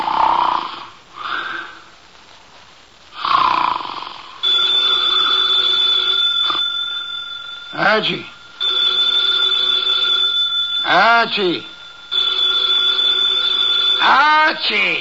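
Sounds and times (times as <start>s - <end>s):
heavy snoring: 0.0s - 1.7s, 3.2s - 4.3s
telephone ringing: 4.4s - 14.9s
man calling out: 7.7s - 8.4s, 10.8s - 11.7s, 14.0s - 14.9s
speech: 8.0s - 8.3s, 10.9s - 11.7s, 14.1s - 14.9s.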